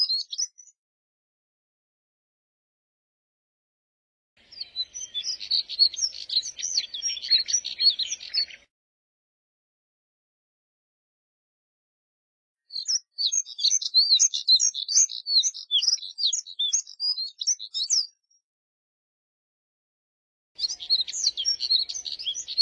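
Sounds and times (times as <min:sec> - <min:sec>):
Moussier's redstart twittering warble: 0:04.4 - 0:08.6, 0:12.7 - 0:18.2, 0:20.6 - 0:22.6.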